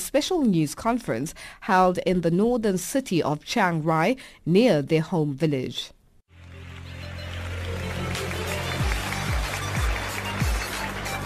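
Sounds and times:
speech: 0.1 - 6.0
crowd cheering and clapping: 6.3 - 11.2.

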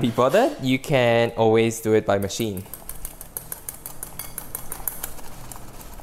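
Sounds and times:
speech: 0.0 - 2.8
small metal whisk clinking against a glass bowl whipping cream by hand: 2.6 - 5.1.

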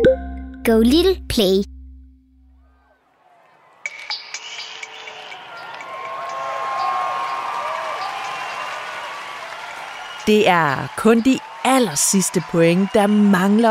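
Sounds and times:
speech: 0.1 - 1.8, 10.3 - 13.6
crowd clapping: 3.2 - 13.6.

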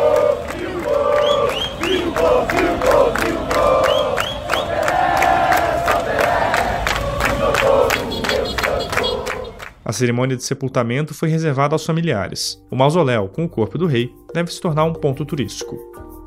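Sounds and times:
football fans chanting the club anthem: 0.0 - 9.7
speech: 9.9 - 16.0.

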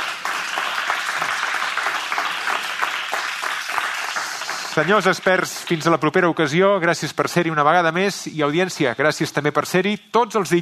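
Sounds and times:
studio audience applause: 0.0 - 6.2
speech: 4.8 - 10.6.

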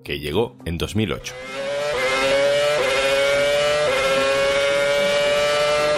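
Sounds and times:
speech: 0.0 - 1.7
Formula 1 racing car engine roaring: 1.3 - 5.9.

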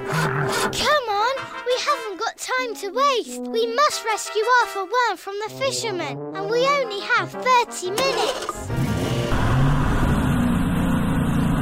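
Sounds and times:
speech: 0.2 - 1.0, 2.6 - 8.8
car engine revving and pulling away: 8.1 - 11.6.

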